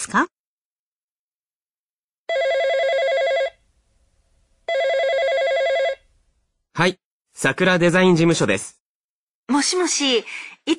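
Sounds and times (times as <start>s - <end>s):
speech: 0.0s - 0.4s, 6.8s - 8.8s, 9.5s - 10.7s
telephone ringing with an electronic trill: 2.3s - 3.6s, 4.7s - 6.1s.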